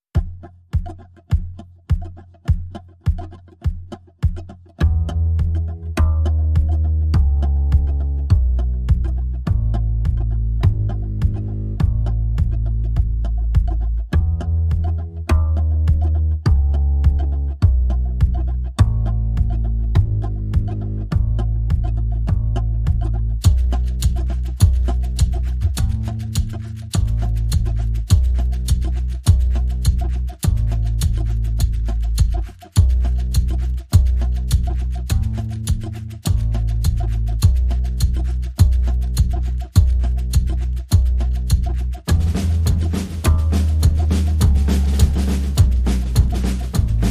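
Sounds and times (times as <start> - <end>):
bass: 0.0 - 47.0
drums: 0.1 - 47.0.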